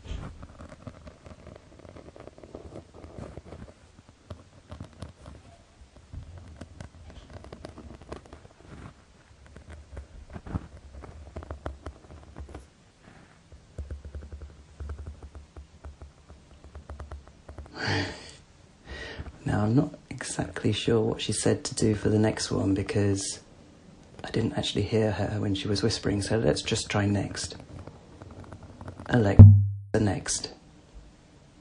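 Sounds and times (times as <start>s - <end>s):
material rustling and crackling: 0.0s - 17.7s
speech: 19.7s - 23.4s, 24.4s - 27.7s, 29.1s - 30.6s.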